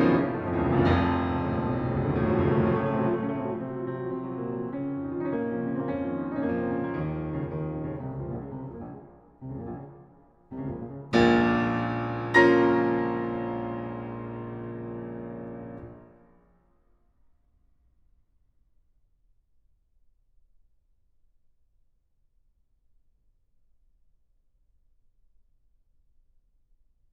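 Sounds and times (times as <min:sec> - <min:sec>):
fast classical sonata movement in B-flat minor: 0:00.0 - 0:16.1.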